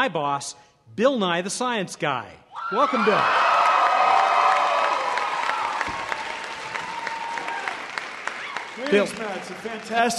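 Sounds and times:
speech: 0.0s - 3.6s, 8.8s - 10.1s
applause from a crowd of more than 900 people in Prochnow Auditorium: 3.1s - 10.1s.

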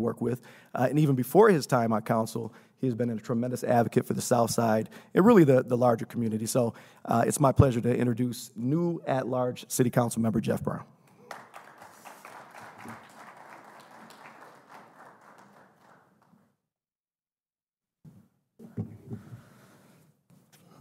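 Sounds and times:
speech: 0.0s - 11.0s
audience applause: 11.1s - 16.4s.

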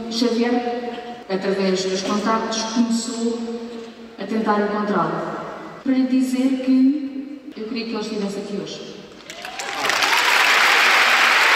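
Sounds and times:
speech: 0.1s - 8.9s
audience applauding after a dramatic pause in a talk: 9.2s - 11.5s.

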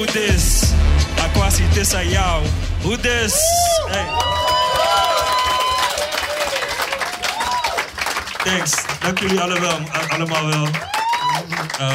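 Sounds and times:
speech: 0.0s - 4.6s, 8.4s - 11.9s
audience applause: 3.8s - 11.9s.

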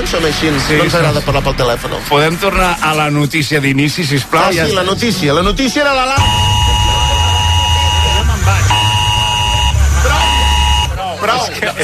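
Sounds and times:
speech: 0.1s - 6.6s, 11.2s - 11.8s
electronic alarm buzzing: 6.2s - 11.0s
overlapping chatter: 6.2s - 11.8s.

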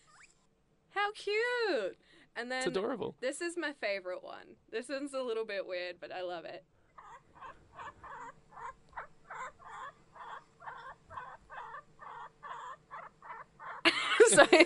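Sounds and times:
guinea pig squeaking: 0.0s - 0.5s, 7.0s - 13.9s
speech: 1.1s - 6.7s, 14.3s - 14.6s
laughter: 13.9s - 14.6s.

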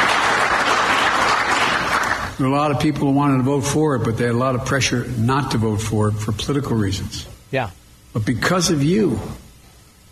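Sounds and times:
audience applause: 0.0s - 2.4s
speech: 2.4s - 9.4s.

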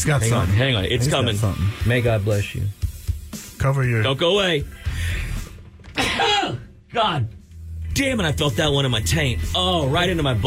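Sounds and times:
speech: 0.0s - 2.8s, 3.6s - 5.2s, 6.9s - 7.4s, 8.0s - 10.4s
sneeze: 6.0s - 6.7s.

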